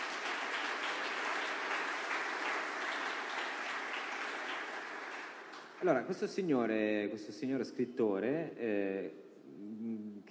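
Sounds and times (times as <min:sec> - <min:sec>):
audience applause: 0:00.0 - 0:06.0
speech: 0:05.8 - 0:10.3.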